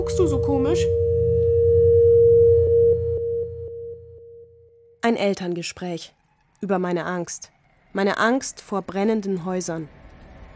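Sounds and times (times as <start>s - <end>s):
speech: 0.0s - 1.0s, 5.1s - 10.0s
low humming drone: 0.0s - 5.0s
piercing alarm tone: 0.0s - 5.0s.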